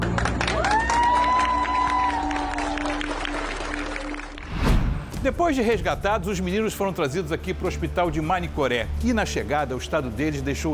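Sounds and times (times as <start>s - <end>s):
large crowd clapping and cheering outdoors at a river port: 0.0s - 4.6s
brief rushing burst: 4.4s - 5.5s
speech: 5.2s - 10.7s.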